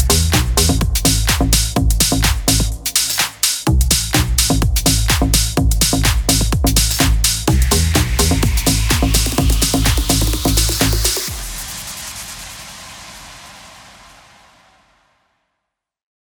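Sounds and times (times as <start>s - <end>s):
plucked synth house music in A minor: 0.0s - 11.7s.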